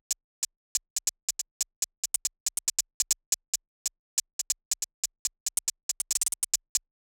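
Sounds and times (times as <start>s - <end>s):
hi-hat: 0.8s - 6.9s.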